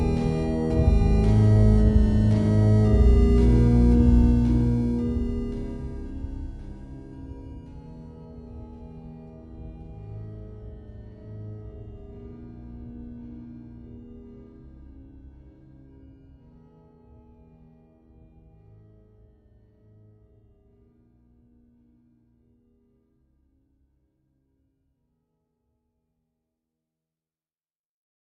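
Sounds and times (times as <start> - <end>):
slowed eight-bit music with reverb and boosted bass: 0.0 - 14.9.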